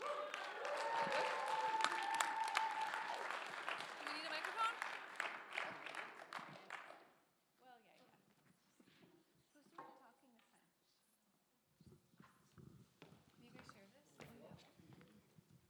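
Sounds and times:
audience applause at a team training session: 0:00.0 - 0:07.0.

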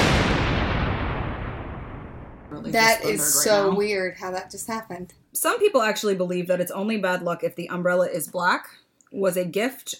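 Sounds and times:
thunder clap rumbling: 0:00.0 - 0:03.0
speech: 0:02.6 - 0:09.9.

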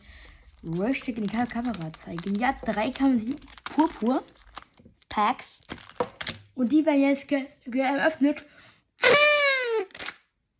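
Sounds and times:
speech: 0:00.6 - 0:04.4, 0:05.1 - 0:05.8, 0:06.6 - 0:09.2
toy horn blast: 0:09.0 - 0:10.0.

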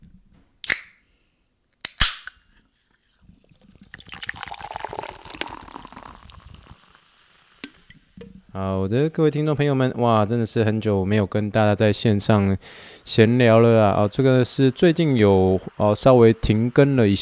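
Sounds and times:
sparkling water opened and fizzing: 0:03.1 - 0:08.2, 0:12.8 - 0:17.2
speech: 0:08.6 - 0:17.2.

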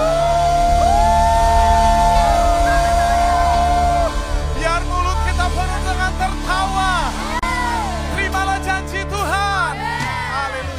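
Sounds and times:
whoops and shouts: 0:00.0 - 0:05.4, 0:09.6 - 0:10.7
audience cheering: 0:00.0 - 0:10.7.

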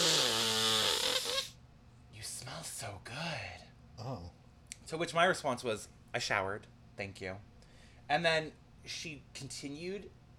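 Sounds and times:
voice imitating someone sniffing: 0:00.0 - 0:01.6
speech: 0:04.9 - 0:07.5, 0:08.1 - 0:10.2.

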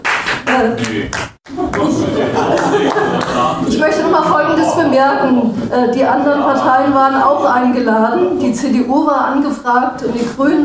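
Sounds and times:
audience applause: 0:00.0 - 0:03.6
speech: 0:00.6 - 0:10.6
laughter: 0:01.5 - 0:08.4.

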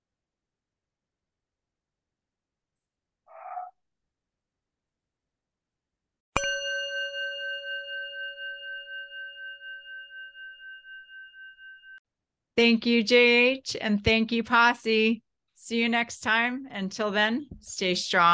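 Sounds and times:
bell ringing: 0:06.4 - 0:12.0
speech: 0:12.6 - 0:18.3.

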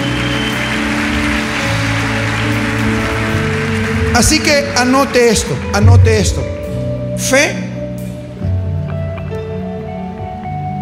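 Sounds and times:
large crowd applauding: 0:00.0 - 0:06.4
low musical drone: 0:00.0 - 0:10.8
speech: 0:04.2 - 0:06.6, 0:07.2 - 0:07.6.

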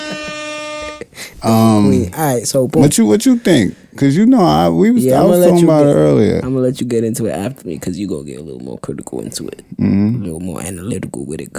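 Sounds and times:
air horn sound effect: 0:00.0 - 0:01.3
speech: 0:01.4 - 0:11.5.

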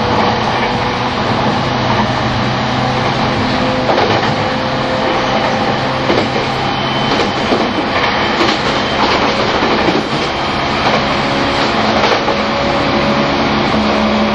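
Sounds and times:
E231 series train on the Shonan-Shinjuku Line special rapid running at speed: 0:00.0 - 0:14.3
clacks and rattles: 0:03.9 - 0:04.4, 0:05.4 - 0:06.5, 0:07.1 - 0:12.4.

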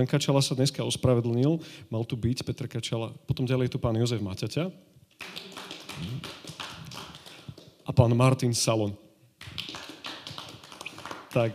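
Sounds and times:
speech: 0:00.0 - 0:06.4, 0:07.9 - 0:09.8, 0:11.3 - 0:11.5
audience clapping: 0:05.2 - 0:07.9, 0:09.4 - 0:11.5.

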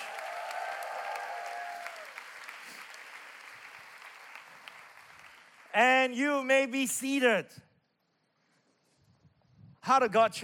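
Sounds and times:
large audience applauding in a reverberant hall: 0:00.0 - 0:05.7
speech: 0:05.8 - 0:07.7, 0:09.9 - 0:10.4.

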